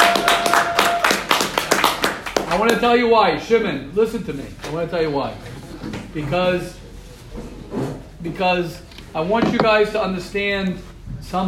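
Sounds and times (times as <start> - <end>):
handclaps: 0.0 - 2.8
speech: 2.6 - 6.8, 7.4 - 11.4.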